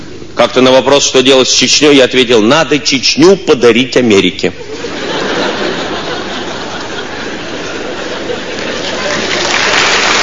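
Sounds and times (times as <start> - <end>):
speech: 0.4 - 4.8
crowd laughter: 4.6 - 10.2
audience applause: 7.8 - 10.2.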